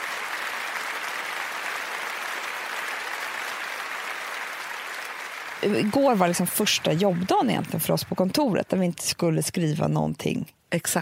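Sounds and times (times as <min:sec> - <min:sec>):
crowd applause: 0:00.0 - 0:08.6
speech: 0:05.6 - 0:11.0.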